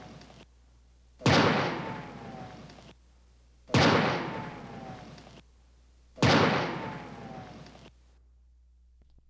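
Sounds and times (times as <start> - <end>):
old-time rifle: 1.2 - 2.9, 3.7 - 5.4, 6.2 - 7.8.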